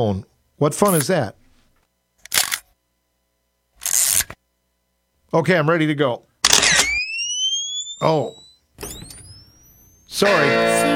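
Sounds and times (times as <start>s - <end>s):
speech: 0.0s - 1.4s, 5.3s - 6.7s, 8.0s - 8.9s, 10.1s - 10.9s
camera whirring and clattering as new film is loaded: 2.2s - 2.8s, 3.8s - 4.4s, 6.4s - 10.1s.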